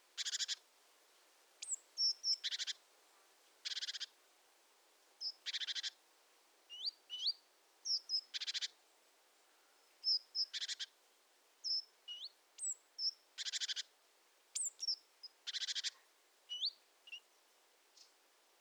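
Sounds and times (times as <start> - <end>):
great tit calls: 0.2 - 0.6, 1.6 - 2.8, 3.6 - 4.2, 5.2 - 6.0, 6.7 - 8.8, 10.0 - 11.0, 11.6 - 13.9, 14.6 - 17.4.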